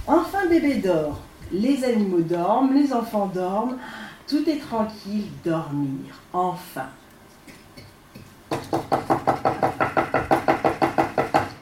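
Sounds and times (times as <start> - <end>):
speech: 0.0 - 7.0
knocking on a door at night: 8.5 - 11.6.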